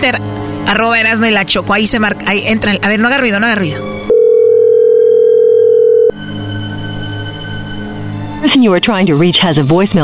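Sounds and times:
speech: 0.0s - 4.0s, 8.5s - 10.0s
telephone ringing tone while dialing: 4.1s - 6.2s.

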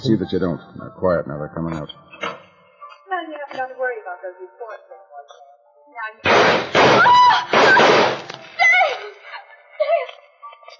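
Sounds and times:
speech: 0.0s - 2.3s, 3.2s - 5.4s
gunshots in a radio drama: 6.2s - 8.4s.

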